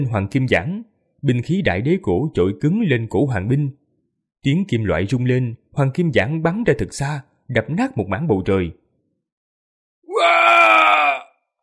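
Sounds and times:
speech: 0:00.0 - 0:03.8, 0:04.4 - 0:08.8
man screaming in anguish: 0:10.1 - 0:11.4.

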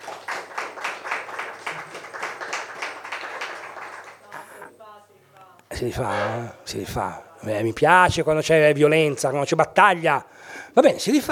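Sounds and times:
audience applause: 0:00.0 - 0:04.6
speech: 0:05.8 - 0:11.3.

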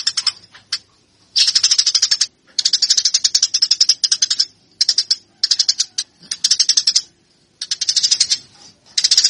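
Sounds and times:
caged Eurasian tree sparrow fighting call of buzzy rapid chirps: 0:00.0 - 0:09.2.

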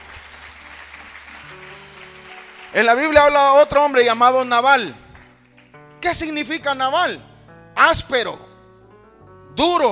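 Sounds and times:
faint church congregation applause during a sermon: 0:00.0 - 0:04.0, 0:05.1 - 0:05.8
speech: 0:02.7 - 0:05.0, 0:06.0 - 0:08.5, 0:09.6 - 0:09.9.

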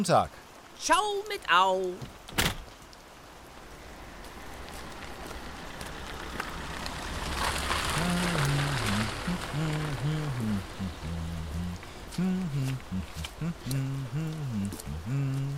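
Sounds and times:
speech: 0:00.0 - 0:02.5, 0:12.2 - 0:15.5
dense rain falling: 0:00.0 - 0:15.5.

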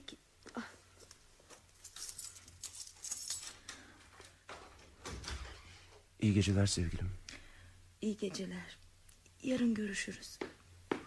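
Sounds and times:
faint low hum: 0:00.0 - 0:11.0
keys jingling and scraping against a door lock: 0:01.7 - 0:03.8
speech: 0:06.2 - 0:07.2, 0:08.0 - 0:08.8, 0:09.4 - 0:10.4.

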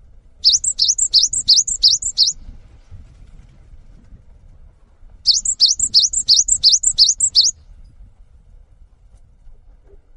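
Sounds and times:
cinereous tit whistled notes: 0:00.4 - 0:02.4, 0:05.3 - 0:07.5.

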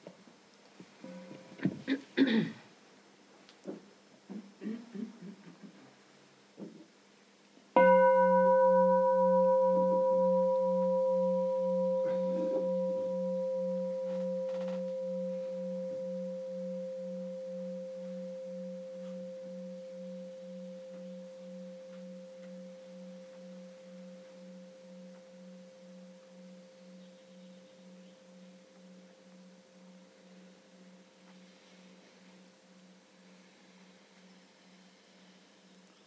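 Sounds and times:
coughs: 0:01.6 - 0:02.7, 0:04.3 - 0:05.6
bell rung once: 0:07.8 - 0:31.6.

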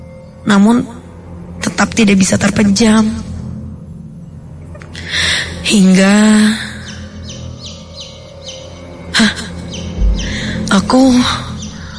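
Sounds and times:
speech: 0:00.4 - 0:01.0, 0:01.8 - 0:03.3, 0:05.7 - 0:06.6, 0:10.9 - 0:11.5
baby chicks peeping sound effect: 0:07.2 - 0:08.8
loud bumps: 0:10.0 - 0:10.7.

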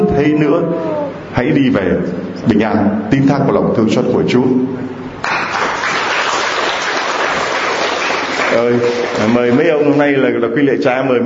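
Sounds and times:
speech: 0:00.2 - 0:05.4, 0:08.5 - 0:11.2
loud hand clapping from a church congregation: 0:05.2 - 0:09.6.

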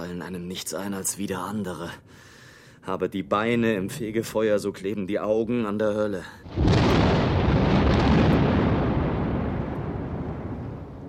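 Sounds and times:
speech: 0:00.1 - 0:06.6
thunder of an approaching thunderstorm: 0:06.5 - 0:11.0.

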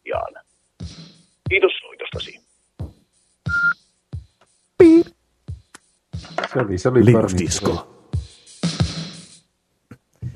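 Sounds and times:
speech: 0:00.8 - 0:02.3, 0:06.6 - 0:07.9
short electronic voicemail beep: 0:03.5 - 0:03.8, 0:04.8 - 0:05.1
voice bursts: 0:04.8 - 0:05.1.

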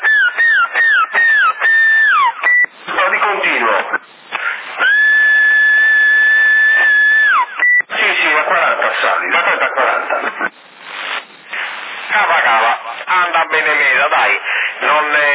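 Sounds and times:
whistling over a CB radio for signal test in Sassari: 0:00.0 - 0:03.2, 0:03.9 - 0:07.9
CB radio talk: 0:00.0 - 0:15.3.

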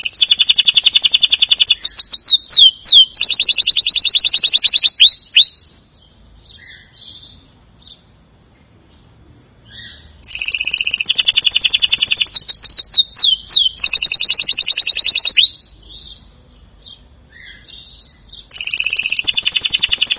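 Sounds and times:
canary song with rolled trills: 0:00.0 - 0:20.1.

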